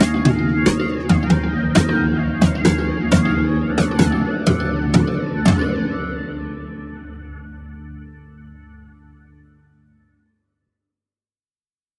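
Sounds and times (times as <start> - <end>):
phasing drums: 0.0 - 6.1.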